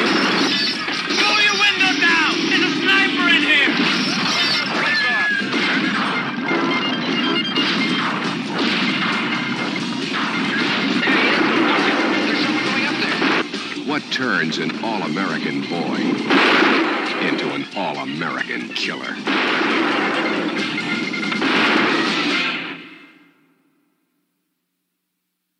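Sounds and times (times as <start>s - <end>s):
gunshots in the trailer for the film Targets: 0.0s - 14.1s, 14.8s - 23.2s
people shouting: 1.0s - 5.5s.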